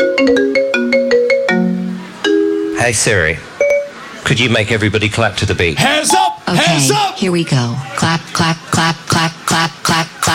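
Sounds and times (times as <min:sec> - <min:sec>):
bright electronic ringtone melody from a phone: 0:00.0 - 0:02.8, 0:03.6 - 0:04.0
speech: 0:02.9 - 0:03.5, 0:04.2 - 0:10.1.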